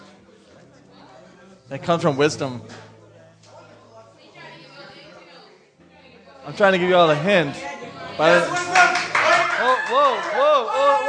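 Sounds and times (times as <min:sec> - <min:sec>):
speech: 0:01.7 - 0:02.9, 0:06.5 - 0:08.9, 0:09.6 - 0:11.0
crowd shouting answers: 0:08.2 - 0:11.0
scattered clapping: 0:08.4 - 0:10.3.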